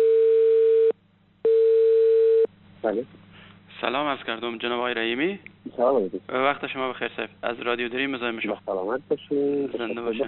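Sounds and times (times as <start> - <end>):
telephone ringback tone as a call is placed late at night: 0.0 - 2.5
speech: 2.8 - 10.2.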